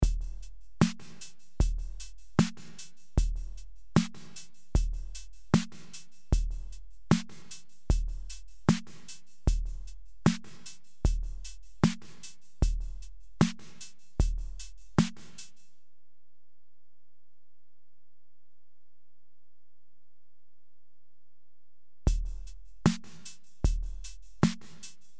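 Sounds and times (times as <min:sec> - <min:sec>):
drum: 0:00.0 - 0:15.6, 0:22.1 - 0:25.0.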